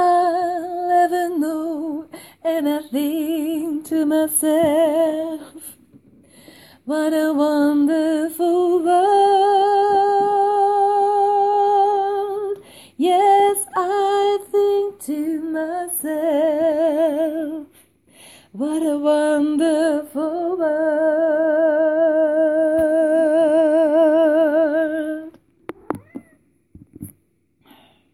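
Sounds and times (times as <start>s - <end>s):
soprano singing: 0.0s - 5.7s, 6.8s - 17.7s, 18.6s - 25.4s.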